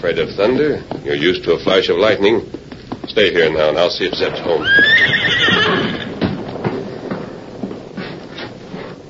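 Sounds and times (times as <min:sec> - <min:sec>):
speech: 0:00.0 - 0:06.1
hoof clops: 0:00.8 - 0:09.0
nervous horse whinnying: 0:04.3 - 0:06.3.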